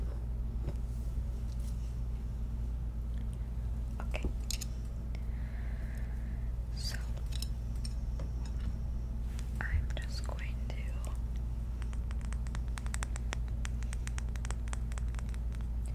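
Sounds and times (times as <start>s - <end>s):
steady low hum: 0.0s - 15.9s
fingers rubbing and scratching through hair in a scalp massage: 11.8s - 15.7s.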